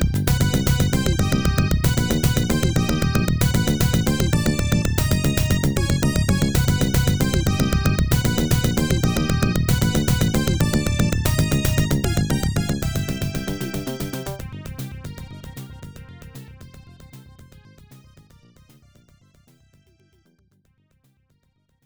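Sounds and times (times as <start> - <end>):
stage 5 game background music: 0.0 - 15.7.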